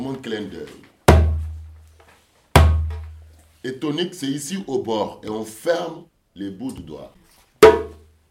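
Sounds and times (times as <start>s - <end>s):
speech: 0.0s - 0.9s, 3.6s - 8.0s
djembe bass notes struck in center: 1.1s - 1.7s, 2.6s - 3.0s, 7.6s - 8.1s.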